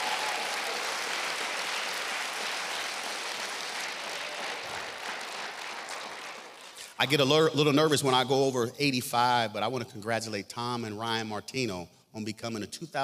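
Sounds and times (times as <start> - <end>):
audience applause: 0.0 - 6.9
speech: 7.0 - 13.0.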